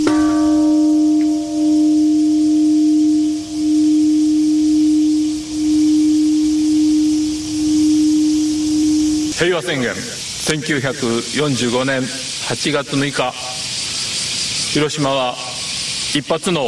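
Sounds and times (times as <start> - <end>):
deep memorial bell ringing at Hiroshima anniversary ceremony: 0.0 - 9.4
speech: 9.4 - 13.4, 14.8 - 15.5, 16.1 - 16.6.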